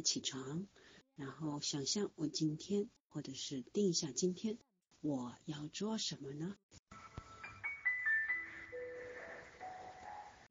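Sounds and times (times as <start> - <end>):
speech: 0.0 - 6.9
soft background music with bright high melody: 6.9 - 10.4.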